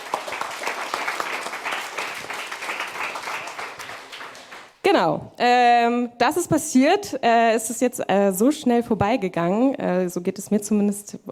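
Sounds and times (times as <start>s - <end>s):
audience applause: 0.0s - 4.8s
speech: 4.9s - 11.2s.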